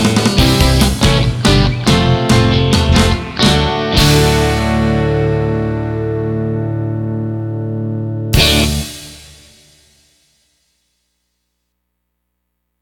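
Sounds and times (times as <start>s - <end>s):
Los Angeles classic rock band playing: 0.0s - 9.6s.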